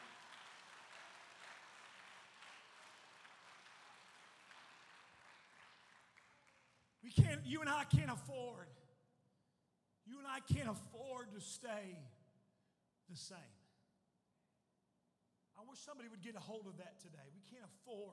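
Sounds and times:
audience clapping hands: 0:00.0 - 0:07.0
person speaking loudly: 0:07.1 - 0:08.6, 0:10.1 - 0:12.0
speech: 0:07.1 - 0:08.8, 0:10.1 - 0:12.2, 0:13.1 - 0:13.6, 0:15.6 - 0:18.1.

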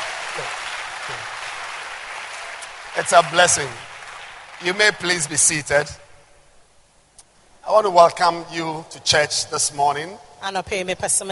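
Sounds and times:
audience clapping: 0:00.0 - 0:06.0
speech: 0:00.4 - 0:01.3, 0:03.0 - 0:03.9, 0:04.6 - 0:06.0, 0:07.7 - 0:11.3.

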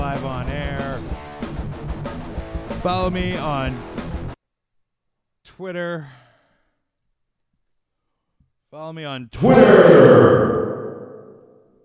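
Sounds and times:
speech: 0:02.8 - 0:04.0, 0:05.6 - 0:06.2, 0:08.7 - 0:10.7
reverb echo sound effect: 0:09.4 - 0:11.6.

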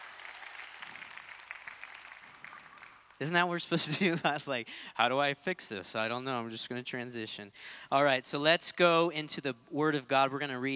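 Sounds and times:
audience clapping: 0:00.0 - 0:03.4
speech: 0:03.2 - 0:10.7.

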